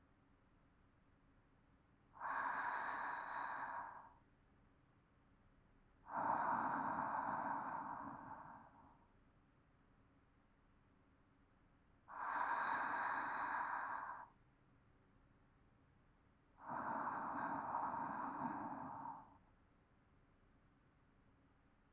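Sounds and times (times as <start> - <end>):
calm sleep breathing: 2.2 - 4.2, 6.1 - 9.1, 12.1 - 14.4, 16.6 - 19.4.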